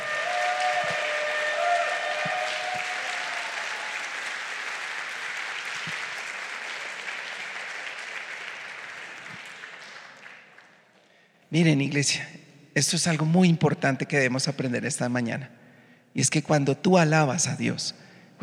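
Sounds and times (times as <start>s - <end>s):
audience applause: 0.0s - 11.0s
speech: 11.5s - 15.6s, 16.2s - 18.4s.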